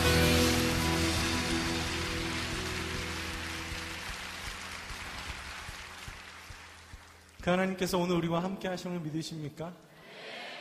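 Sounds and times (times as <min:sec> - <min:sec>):
audience applause: 0:00.0 - 0:07.6
speech: 0:07.4 - 0:09.9.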